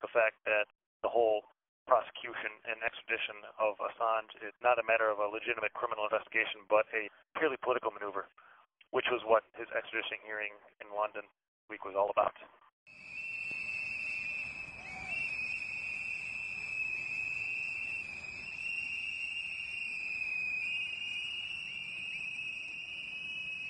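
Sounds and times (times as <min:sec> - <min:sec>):
speech: 0:00.0 - 0:13.2
activists blowing whistles outside Alexandria Detention Center: 0:12.9 - 0:23.6.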